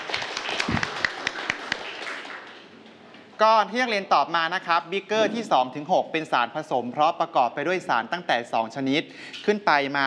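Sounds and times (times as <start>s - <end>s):
students applauding classmates: 0.0s - 2.8s
speech: 3.4s - 10.0s.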